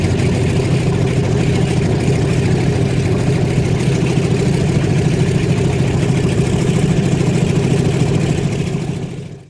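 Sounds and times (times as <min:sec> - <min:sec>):
Douglas DC3 aircraft engine starting up and idling: 0:00.0 - 0:09.4.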